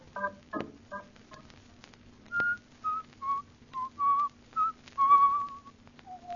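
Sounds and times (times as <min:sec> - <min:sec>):
person whistling a tune: 0:02.3 - 0:06.3.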